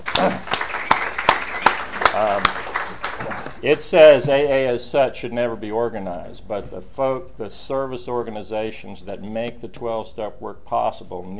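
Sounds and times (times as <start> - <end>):
audience applause: 0.0 - 3.9
speech: 0.2 - 0.5, 3.6 - 11.3.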